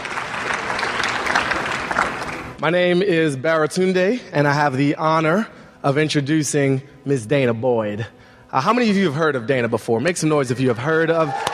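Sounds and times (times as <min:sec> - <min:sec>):
crowd applauding: 0:00.0 - 0:02.6, 0:11.2 - 0:11.5
speech: 0:02.6 - 0:11.5.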